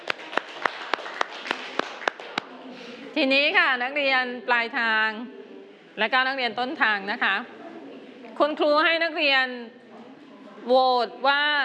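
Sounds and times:
students clapping: 0.0 - 2.5
speech: 3.2 - 5.4, 6.0 - 7.6, 8.4 - 9.8, 10.6 - 11.6.

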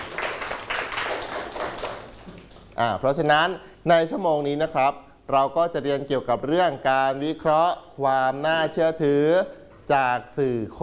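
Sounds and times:
classmates clapping for a student in a school lesson: 0.0 - 2.8
speech: 2.8 - 10.8.

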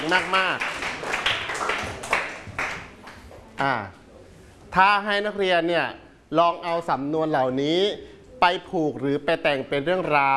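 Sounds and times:
students clapping: 0.0 - 3.2
speech: 0.1 - 0.7, 3.6 - 4.0, 4.7 - 10.3.

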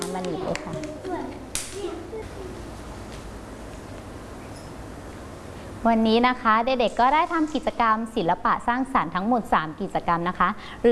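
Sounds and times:
children clapping hands: 0.0 - 1.9
speech: 0.2 - 2.9, 5.8 - 10.9.

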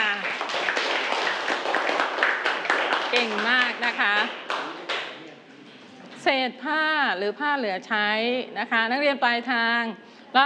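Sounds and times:
students clapping: 0.0 - 5.2
speech: 3.2 - 4.4, 6.3 - 10.4.

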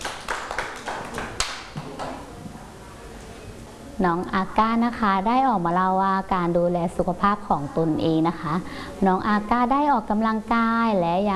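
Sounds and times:
children clapping: 0.0 - 2.3
speech: 4.0 - 11.3.

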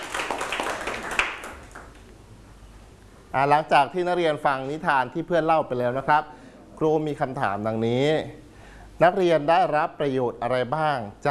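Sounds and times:
classroom of students clapping: 0.0 - 2.1
speech: 3.3 - 8.4, 9.0 - 11.3.

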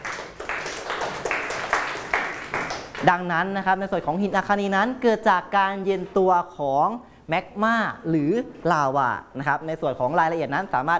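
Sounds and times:
classroom applause for a student: 0.0 - 3.2
speech: 3.0 - 10.9.

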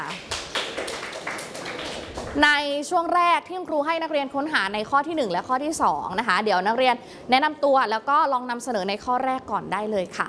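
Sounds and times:
students clapping in a classroom: 0.0 - 2.5
speech: 2.3 - 10.2.

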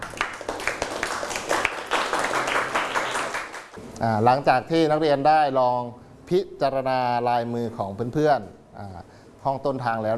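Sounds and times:
students clapping for classmate: 0.0 - 3.8
speech: 4.0 - 10.1.

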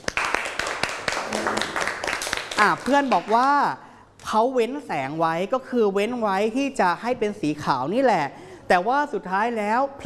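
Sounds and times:
classroom clapping for a classmate: 0.0 - 3.5
speech: 2.6 - 10.0.

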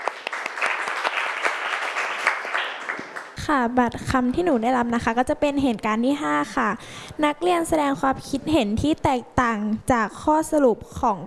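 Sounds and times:
classroom applause: 0.0 - 3.4
speech: 3.5 - 11.2.

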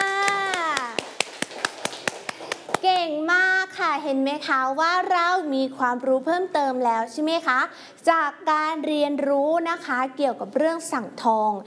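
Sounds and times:
children clapping for their classmates in class: 0.0 - 2.8
speech: 3.8 - 11.6.

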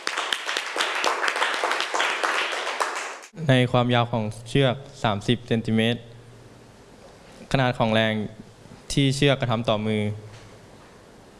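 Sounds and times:
audience applause: 0.0 - 3.3
speech: 3.4 - 6.1, 7.5 - 10.3.

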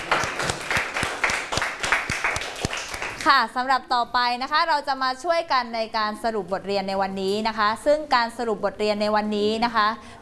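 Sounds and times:
classroom applause: 0.0 - 3.3
speech: 3.2 - 10.2.

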